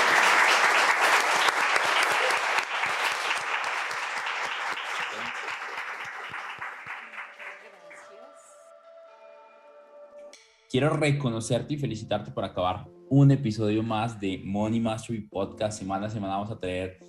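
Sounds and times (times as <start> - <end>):
applause: 0.0 - 8.2
speech: 10.7 - 17.0.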